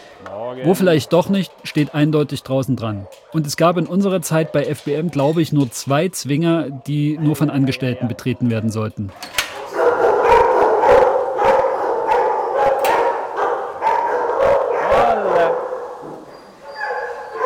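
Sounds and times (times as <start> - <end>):
speech: 0.2 - 9.4
dogs barking and howling in kennels: 2.5 - 5.4, 6.4 - 7.9, 9.1 - 17.4.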